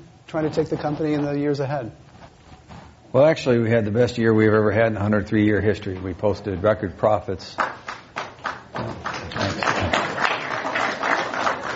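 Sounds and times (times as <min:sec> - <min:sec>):
speech: 0:00.3 - 0:02.1, 0:03.1 - 0:07.7
audience applause: 0:07.6 - 0:11.7.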